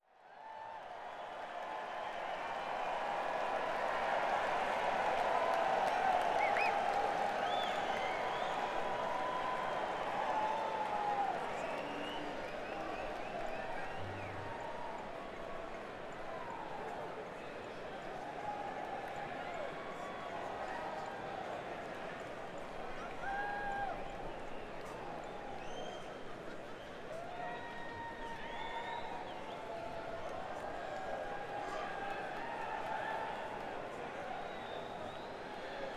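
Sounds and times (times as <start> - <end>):
crowd: 0.0 - 35.9.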